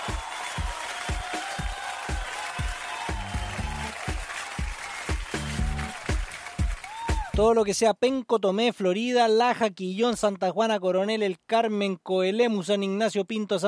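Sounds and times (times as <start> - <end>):
crowd applause: 0.0 - 7.4
regular pulsing beat: 0.0 - 7.5
speech: 7.4 - 13.6.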